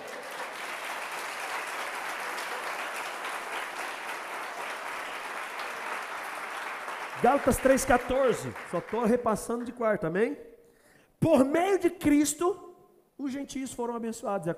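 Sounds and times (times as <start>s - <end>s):
audience applause: 0.0s - 9.2s
speech: 7.2s - 10.5s, 11.2s - 12.6s, 13.2s - 14.5s.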